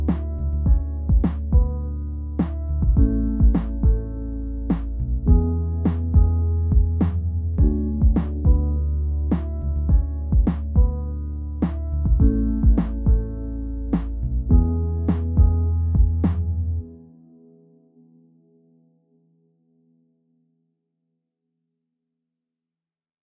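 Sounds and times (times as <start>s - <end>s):
instrumental music: 0.0s - 17.2s.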